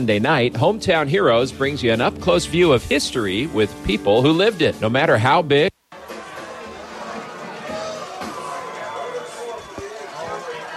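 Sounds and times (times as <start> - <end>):
speech: 0.0 - 5.7
loud crowd roar at a football game: 5.9 - 10.7.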